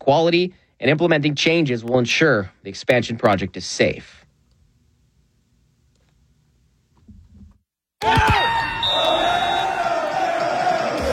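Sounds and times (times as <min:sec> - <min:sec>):
speech: 0:00.0 - 0:04.2, 0:08.0 - 0:08.4
crowd cheering in a bar: 0:08.0 - 0:11.1.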